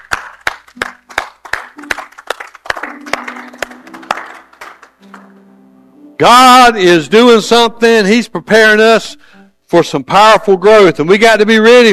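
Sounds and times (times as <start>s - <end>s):
audience hand clapping: 0.0s - 5.6s
speech: 6.2s - 11.9s.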